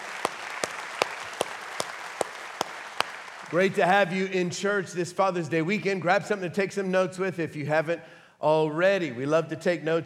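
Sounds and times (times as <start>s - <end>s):
church congregation clapping in unison: 0.0s - 4.2s
noise: 0.0s - 10.0s
speech: 3.5s - 10.0s.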